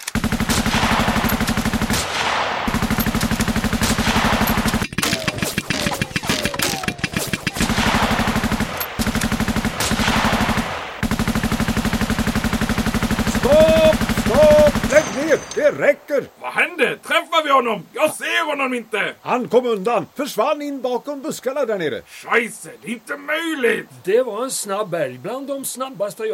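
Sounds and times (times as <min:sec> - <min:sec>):
rapid rifle gunfire: 0:00.0 - 0:15.6
speech: 0:15.8 - 0:26.3.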